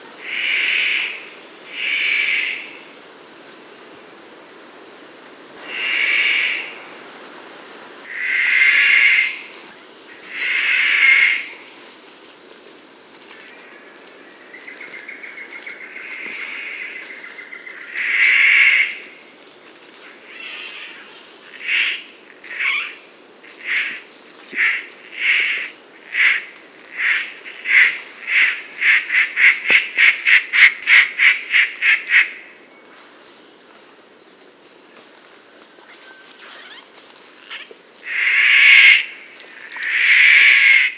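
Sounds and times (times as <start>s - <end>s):
rifle bird of paradise calling: 0.2s - 2.9s, 5.6s - 6.8s, 8.0s - 11.9s, 13.4s - 32.4s, 35.9s - 40.9s.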